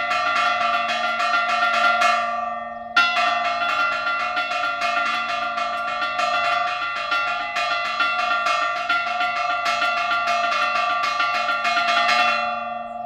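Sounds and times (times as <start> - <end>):
bells ringing at LaCorrada: 0.0 - 13.0.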